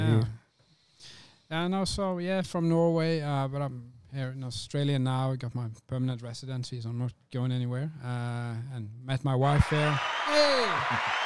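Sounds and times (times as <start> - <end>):
speech: 1.5 - 11.2
applause sound effect: 9.4 - 11.2.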